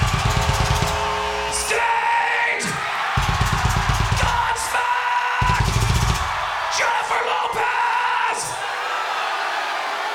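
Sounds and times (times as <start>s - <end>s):
rapid low rhythmic thumping: 0.0s - 1.7s, 3.2s - 4.6s, 5.4s - 6.5s
crowd cheering: 0.0s - 10.1s.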